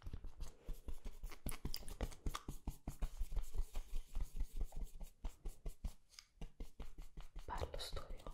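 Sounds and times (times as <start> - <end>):
rapid brushing strokes: 0.2 - 8.3.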